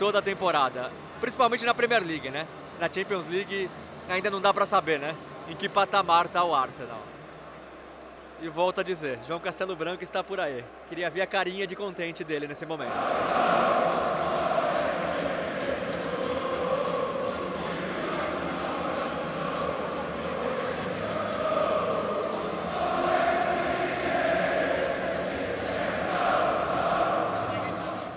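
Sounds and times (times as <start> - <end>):
speech: 0.0 - 7.2, 8.4 - 13.8
large crowd of football fans singing a chant: 12.9 - 28.1.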